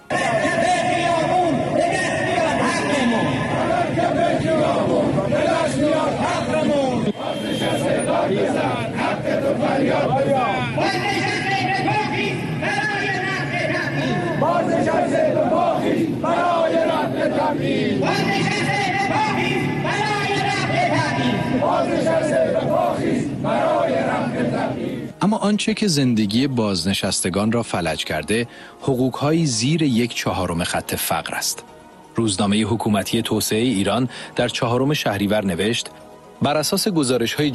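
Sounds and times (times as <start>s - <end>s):
protest crowd shouting in the street: 0.0s - 25.1s
speech: 25.4s - 37.5s.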